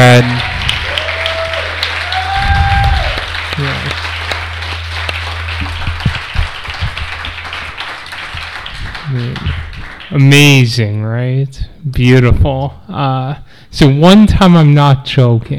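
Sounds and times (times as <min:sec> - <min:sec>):
audience applause: 0:00.0 - 0:10.8
speech: 0:00.1 - 0:00.5, 0:10.1 - 0:15.5.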